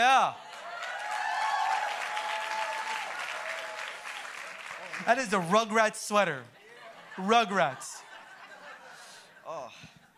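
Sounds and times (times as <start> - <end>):
audience cheering and applause: 0.3 - 5.6
speech: 5.0 - 6.6, 7.2 - 8.0
laughter: 6.6 - 10.1.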